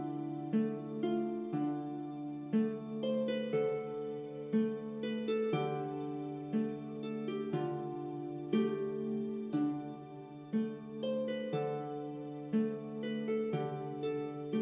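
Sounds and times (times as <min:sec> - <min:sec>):
light ambient fantasy RPG music: 0:00.0 - 0:14.6.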